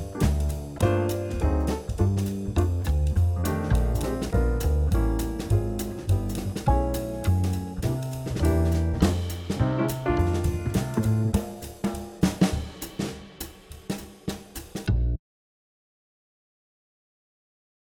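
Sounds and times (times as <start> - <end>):
backing track: 0.0 - 13.4.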